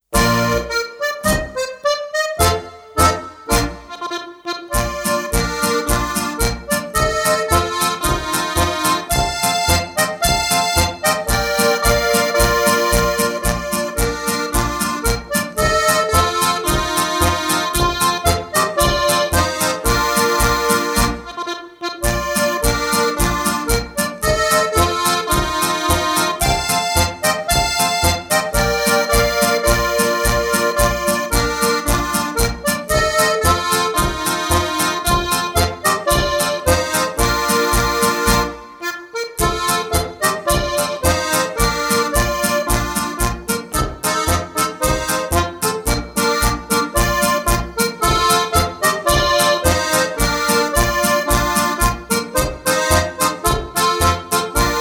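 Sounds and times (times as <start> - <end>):
harmonica: 0.0 - 54.8.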